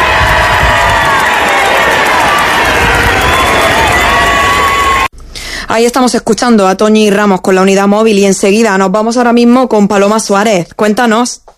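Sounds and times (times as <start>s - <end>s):
packed crowd roaring and cheering in town square: 0.0s - 5.1s
whoops: 0.0s - 5.1s
speech: 5.7s - 11.5s.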